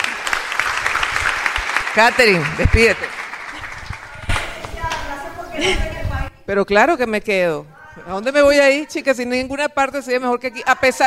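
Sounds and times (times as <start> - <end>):
crowd clapping: 0.0 - 5.0
speech: 2.0 - 3.2, 5.6 - 5.9, 6.5 - 11.0.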